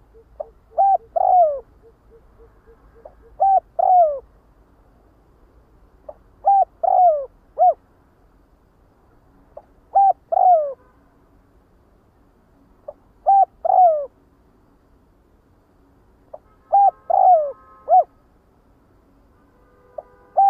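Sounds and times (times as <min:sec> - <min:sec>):
spotted dove cooing: 0:00.0 - 0:04.3, 0:06.1 - 0:07.8, 0:09.9 - 0:10.8, 0:12.9 - 0:14.1, 0:16.7 - 0:18.1.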